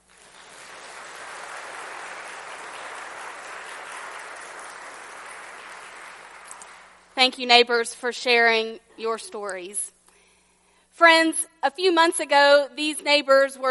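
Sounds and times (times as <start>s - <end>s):
round of applause: 0.0s - 7.2s
speech: 7.2s - 10.0s, 11.0s - 13.6s.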